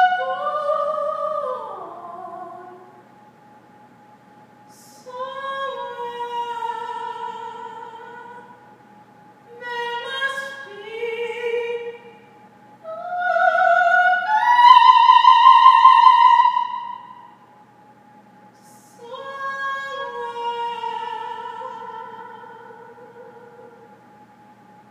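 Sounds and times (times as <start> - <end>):
person singing a simple spiritual a cappella: 0.0 - 2.9, 4.7 - 8.5, 9.5 - 12.2, 12.8 - 17.1, 18.6 - 23.8.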